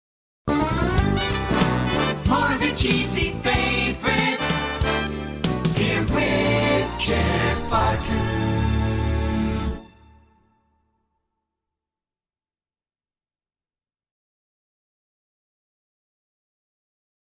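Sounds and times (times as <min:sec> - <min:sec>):
song: 0:00.5 - 0:10.6.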